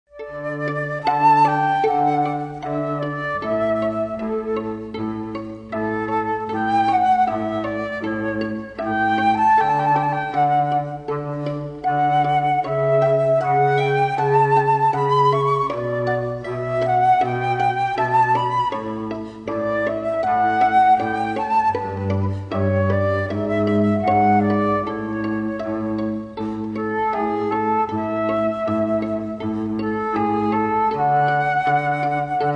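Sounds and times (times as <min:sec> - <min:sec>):
flute trio playing: 0:00.1 - 0:32.5.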